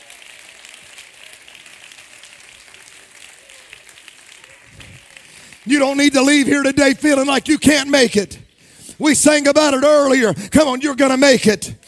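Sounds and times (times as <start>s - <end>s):
audience clapping hands: 0.0s - 8.7s
speech: 5.6s - 8.4s, 9.0s - 11.8s.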